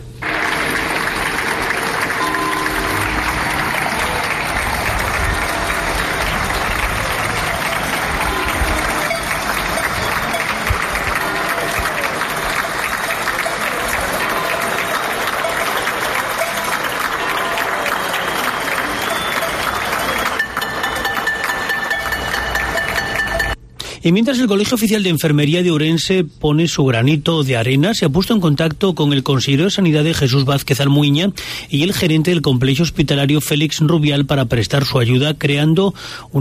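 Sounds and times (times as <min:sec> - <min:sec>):
people applauding on balconies: 0:00.0 - 0:23.6
speech: 0:24.0 - 0:36.3.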